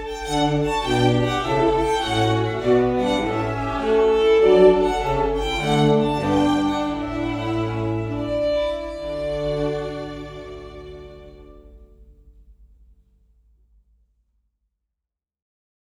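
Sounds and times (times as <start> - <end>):
trumpet quartet playing: 0.0 - 11.6.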